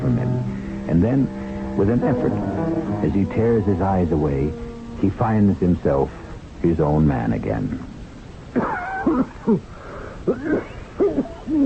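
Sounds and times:
short ragged breaths: 0.4s - 1.8s
speech: 0.9s - 7.9s, 8.5s - 11.6s
harsh wheezing cough: 10.2s - 11.6s.

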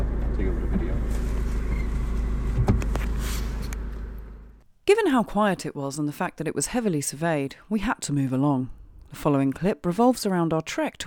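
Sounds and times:
car driving past a temple, engine and road rumble: 0.0s - 4.6s
speech: 0.4s - 0.9s, 4.9s - 11.0s.

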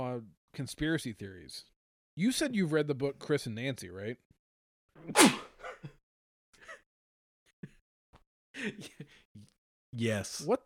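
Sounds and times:
speech: 0.2s - 4.3s, 5.0s - 5.5s, 8.6s - 9.2s, 10.0s - 10.6s
stifled sneeze: 5.0s - 5.7s.

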